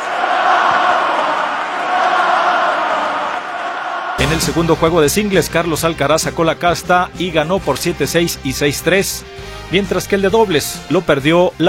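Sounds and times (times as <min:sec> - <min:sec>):
crowd chanting a name: 0:00.0 - 0:04.4
crowd applauding: 0:00.0 - 0:05.3
speech: 0:04.3 - 0:11.6.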